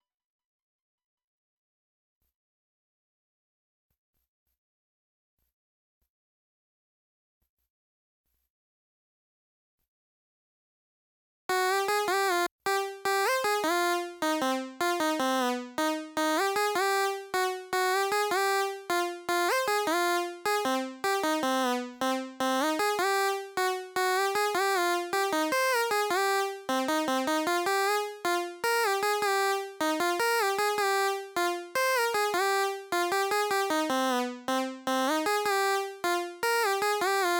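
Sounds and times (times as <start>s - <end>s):
melody: 11.5s - 37.3s.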